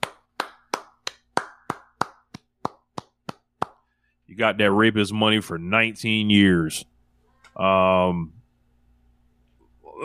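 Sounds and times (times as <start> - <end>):
hand clapping: 0.0 - 3.9
speech: 4.3 - 6.9, 7.6 - 8.4.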